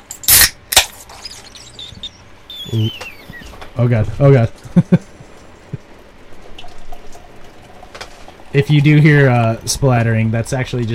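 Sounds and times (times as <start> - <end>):
beer can being opened: 0.2 - 1.4
speech: 2.7 - 3.1, 3.8 - 5.1, 8.6 - 10.9.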